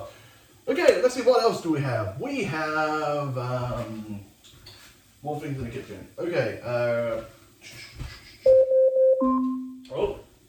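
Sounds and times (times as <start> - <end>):
speech: 0.8 - 4.3, 5.2 - 8.6
smart speaker timer alarm: 8.5 - 9.9.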